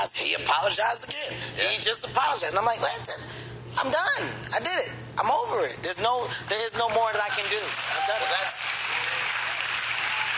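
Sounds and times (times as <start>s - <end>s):
speech: 0.3s - 8.7s
audience applause: 7.2s - 10.3s.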